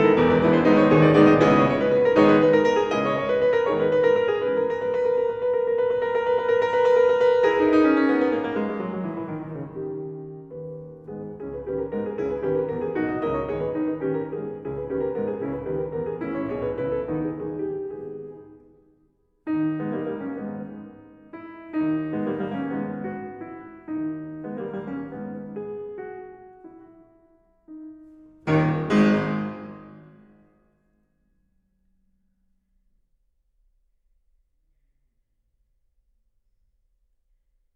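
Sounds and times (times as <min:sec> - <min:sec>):
Presto prelude in G sharp minor: 0:00.0 - 0:18.8, 0:19.5 - 0:30.5.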